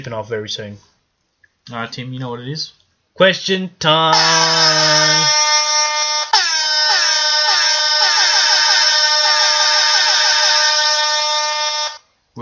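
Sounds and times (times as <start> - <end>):
speech: 0.0 - 0.9, 1.6 - 5.4
air horn sound effect: 4.2 - 12.1.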